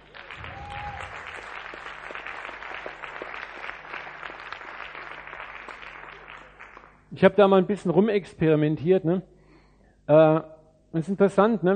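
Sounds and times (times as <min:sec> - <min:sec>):
audience applause: 0:00.0 - 0:07.0
speech: 0:07.2 - 0:09.3, 0:10.1 - 0:11.7.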